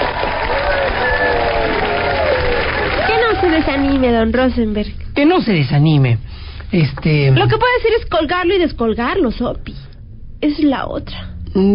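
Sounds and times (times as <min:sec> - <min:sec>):
audience applause: 0:00.0 - 0:04.3
speech: 0:03.6 - 0:09.8, 0:10.4 - 0:11.7.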